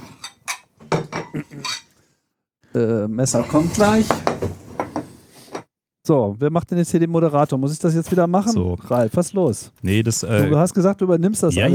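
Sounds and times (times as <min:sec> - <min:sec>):
crockery plates clinking as they are handed out for Christmas stollen: 0:00.0 - 0:01.9
speech: 0:02.8 - 0:04.6, 0:06.1 - 0:11.7.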